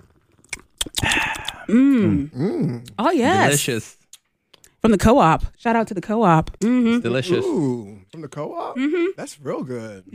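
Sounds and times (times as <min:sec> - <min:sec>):
person sipping a bubbly drink: 0:00.0 - 0:02.9
speech: 0:01.7 - 0:04.0, 0:04.8 - 0:10.1.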